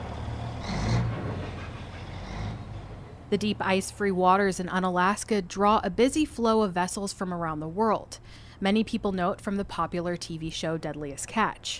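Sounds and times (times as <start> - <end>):
tractors and heavy machinery at fishing docks: 0.0 - 3.9
speech: 3.3 - 11.7.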